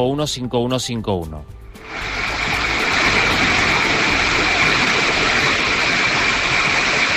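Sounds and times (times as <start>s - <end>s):
speech: 0.0s - 2.2s
rain in La Esperanza Tenerife: 1.8s - 7.1s.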